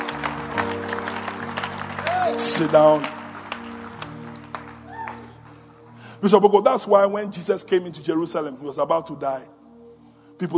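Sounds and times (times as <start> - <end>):
weak audience clapping: 0.0 - 5.9
speech: 2.4 - 3.2, 6.2 - 9.6, 10.4 - 10.5.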